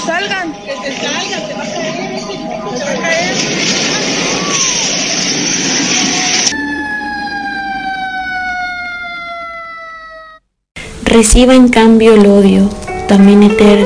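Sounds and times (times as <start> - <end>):
earthquake early-warning alarm siren: 0.0 - 10.5
loud rushing noise: 2.2 - 6.6
speech: 11.2 - 13.8.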